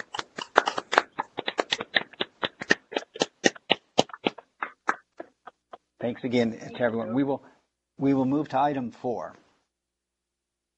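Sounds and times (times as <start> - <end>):
small group clapping: 0.0 - 7.0
speech: 6.0 - 9.4.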